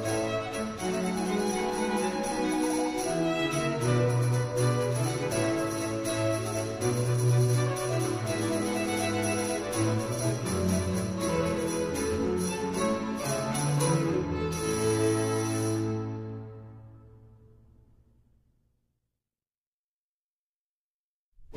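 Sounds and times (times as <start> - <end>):
cello solo: 0.0 - 16.7.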